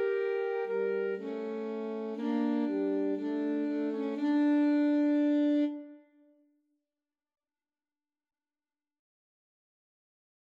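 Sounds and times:
alto saxophone trio playing a pastorale: 0:00.0 - 0:05.9.

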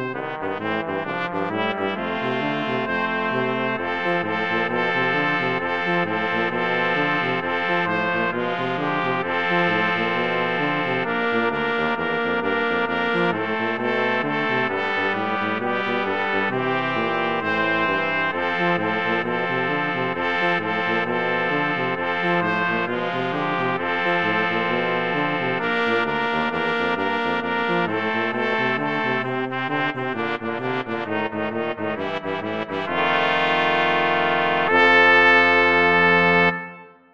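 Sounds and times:
mixed brass ensemble of four players playing boogie: 0:00.0 - 0:36.9.

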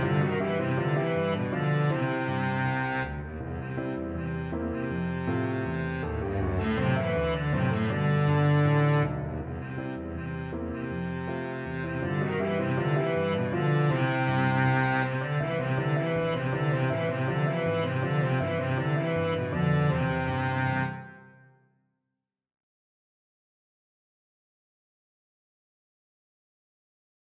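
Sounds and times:
double bass: 0:00.0 - 0:21.1.

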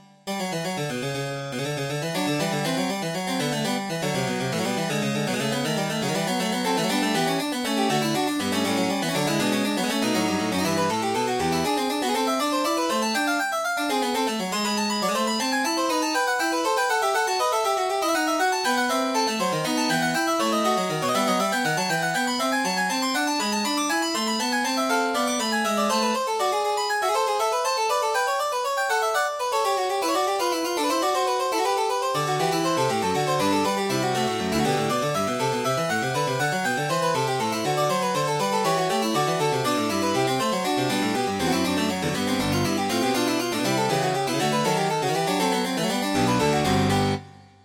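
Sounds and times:
piano partita: 0:00.0 - 0:47.6.

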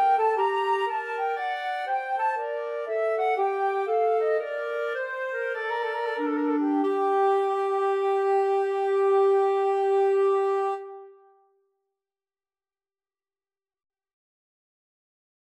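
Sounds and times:
bourree played as flute and clarinet duet: 0:00.0 - 0:11.3.

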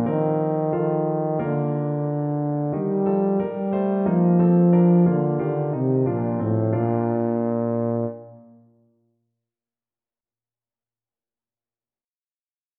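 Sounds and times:
tuba playing a Christmas carol: 0:00.0 - 0:08.6.

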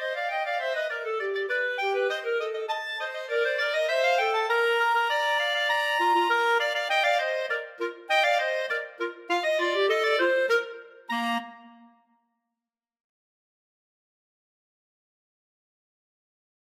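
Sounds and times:
clarinet duet: 0:00.0 - 0:12.0.

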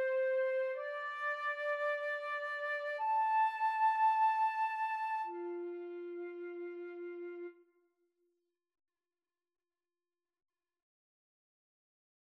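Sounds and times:
flute and cello duet: 0:00.0 - 0:07.6.

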